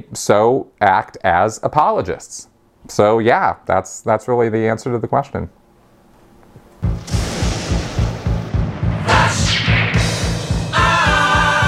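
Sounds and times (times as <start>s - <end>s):
speech: 0.0s - 5.6s
crackling sweeps: 6.8s - 10.8s
thunder-and-lightning sound effect: 6.8s - 11.0s
sustained tone: 7.8s - 11.6s.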